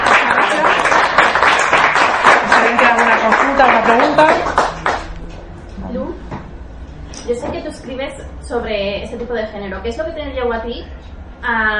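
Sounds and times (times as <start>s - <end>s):
audience applause after a talk: 0.0s - 5.2s
speech: 3.9s - 4.6s, 8.5s - 11.7s.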